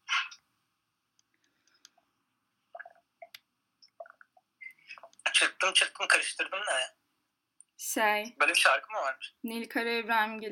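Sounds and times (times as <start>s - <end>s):
person drinking water and swallowing: 2.7s - 5.2s
speech: 5.6s - 7.0s, 7.8s - 10.5s.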